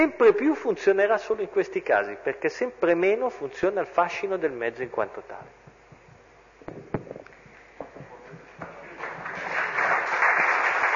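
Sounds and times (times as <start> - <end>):
speech: 0.0 - 5.6
applause: 8.8 - 10.9.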